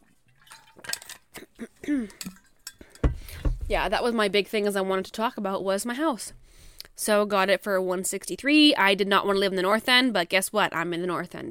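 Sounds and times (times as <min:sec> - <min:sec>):
person sipping water: 0:00.1 - 0:03.4
speech: 0:01.9 - 0:02.4, 0:03.7 - 0:06.4, 0:07.0 - 0:11.4.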